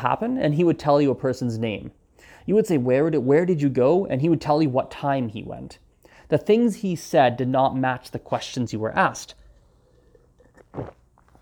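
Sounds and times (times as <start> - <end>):
speech: 0.0 - 9.4, 10.8 - 11.0
person drinking a sip of water: 9.4 - 11.3.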